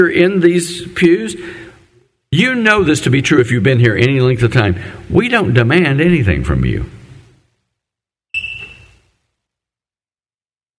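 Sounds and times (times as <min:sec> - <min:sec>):
speech: 0:00.0 - 0:01.7, 0:02.3 - 0:07.0
shrill electronic beep: 0:08.4 - 0:09.1.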